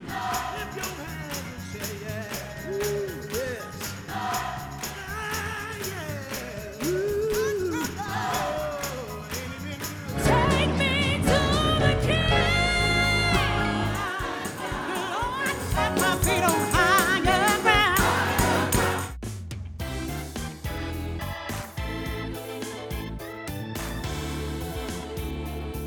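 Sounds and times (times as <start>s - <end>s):
traditional gospel music: 0.0s - 25.8s.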